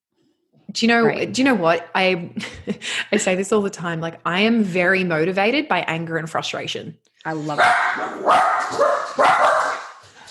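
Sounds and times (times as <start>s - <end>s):
speech: 0.7s - 9.5s
two cavoodle dogs barking: 7.5s - 10.0s.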